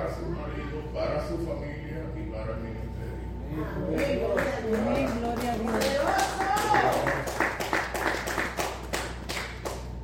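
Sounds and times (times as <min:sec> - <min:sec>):
speech: 0:00.1 - 0:06.9
audience applause: 0:04.0 - 0:09.9.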